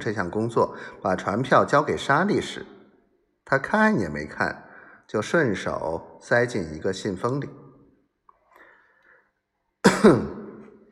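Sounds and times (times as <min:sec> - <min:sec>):
speech: 0:00.0 - 0:02.8, 0:03.5 - 0:07.6, 0:09.9 - 0:10.4
throat clearing: 0:09.8 - 0:10.8.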